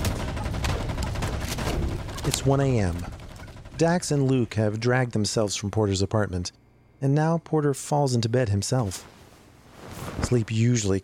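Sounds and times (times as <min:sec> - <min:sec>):
gunfire from a monster-shooting video game: 0:00.0 - 0:04.0
speech: 0:02.3 - 0:03.2, 0:03.8 - 0:09.2, 0:10.2 - 0:11.0.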